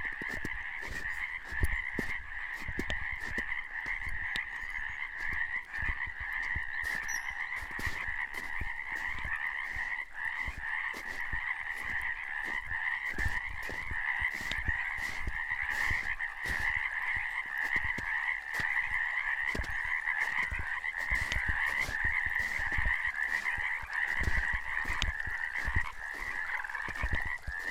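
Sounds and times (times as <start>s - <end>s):
Bufo borealis calling: 0.0s - 27.6s.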